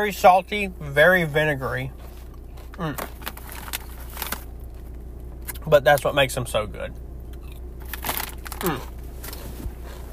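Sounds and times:
speech: 0.0s - 2.0s, 2.8s - 3.2s, 5.7s - 7.0s, 8.6s - 8.9s
crunching Cape Cod salt and vinegar potato chips: 1.9s - 5.7s, 7.3s - 9.4s.

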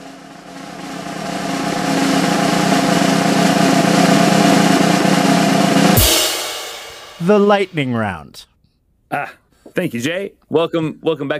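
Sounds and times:
bright hissing crash: 0.0s - 7.6s
voices imitating a drum roll with rolled tongue: 0.0s - 7.7s
speech: 7.3s - 8.5s, 9.1s - 11.3s.

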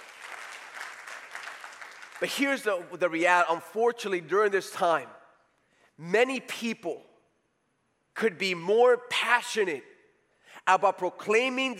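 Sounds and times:
audience clapping: 0.0s - 2.7s
speech: 2.2s - 5.2s, 6.0s - 7.1s, 8.2s - 9.9s, 10.6s - 11.7s.

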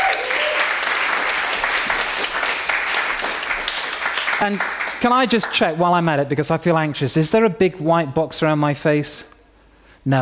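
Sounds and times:
audience applause: 0.0s - 5.7s
speech: 4.4s - 9.3s, 10.0s - 10.2s.

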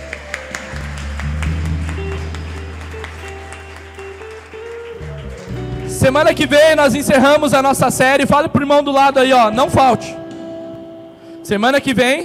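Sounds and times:
audience applause: 0.0s - 6.8s
speech: 6.0s - 10.2s, 11.5s - 12.2s.

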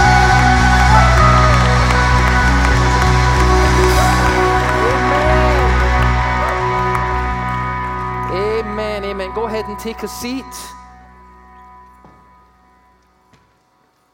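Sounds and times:
church audience shouting and cheering: 0.0s - 8.7s
speech: 9.8s - 10.8s.

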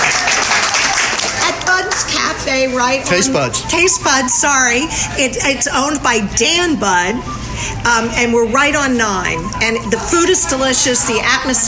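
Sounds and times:
club members clapping: 0.0s - 2.3s
speech: 2.5s - 11.6s.

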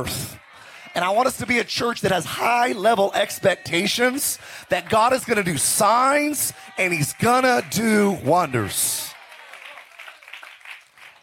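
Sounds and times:
speech: 0.0s - 0.4s, 1.0s - 9.1s
scattered hand clapping from a crowd: 4.0s - 11.2s.

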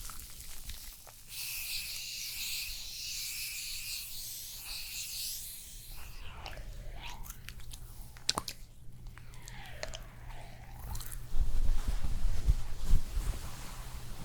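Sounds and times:
spa facial hissing spray: 1.1s - 8.0s
low steady hum: 4.6s - 14.0s.

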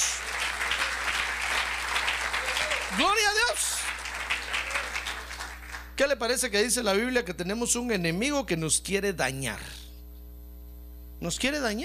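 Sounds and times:
audience applause: 0.0s - 6.0s
speech: 6.0s - 9.8s, 11.2s - 11.8s.

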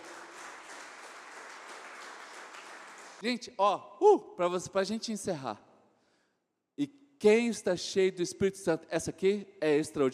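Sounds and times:
audience applauding: 0.0s - 3.2s
speech: 3.2s - 5.7s, 6.8s - 10.1s.

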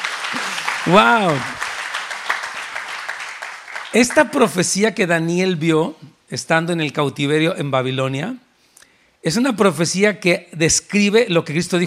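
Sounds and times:
audience applause: 0.0s - 4.4s
speech: 0.9s - 1.6s, 3.9s - 8.4s, 9.2s - 11.8s.

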